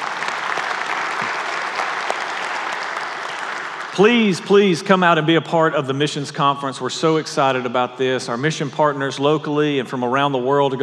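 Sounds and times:
in-room audience clapping: 0.0 - 5.0
speech: 4.0 - 10.8.

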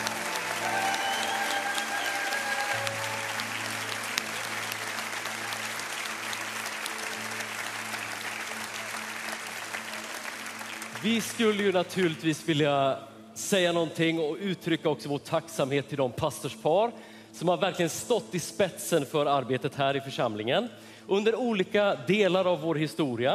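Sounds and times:
applause: 0.0 - 12.6
speech: 11.0 - 23.3.

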